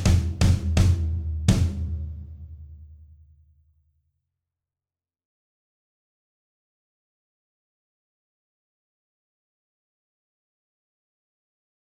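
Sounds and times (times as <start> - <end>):
percussion accompaniment: 0.0 - 3.0.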